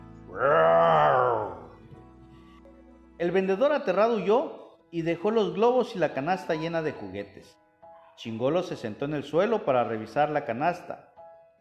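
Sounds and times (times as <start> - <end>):
person imitating a tiger roar: 0.3 - 1.8
speech: 3.2 - 7.6, 8.2 - 11.1.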